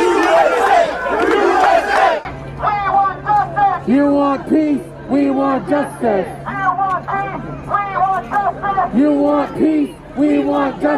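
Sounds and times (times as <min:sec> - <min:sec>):
large crowd cheering and shouting: 0:00.0 - 0:03.1
scattered crowd voices: 0:00.0 - 0:10.9
speech: 0:03.9 - 0:06.4, 0:08.9 - 0:10.9.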